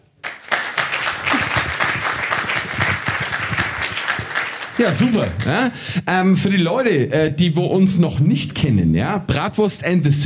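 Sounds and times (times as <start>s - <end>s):
audience applause: 0.2s - 5.7s
speech: 4.8s - 10.2s.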